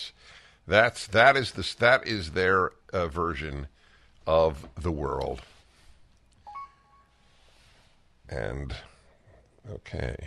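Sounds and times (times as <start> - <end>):
speech: 0.7 - 5.5, 8.3 - 8.9, 9.6 - 10.2
electronic beeps: 6.4 - 7.2.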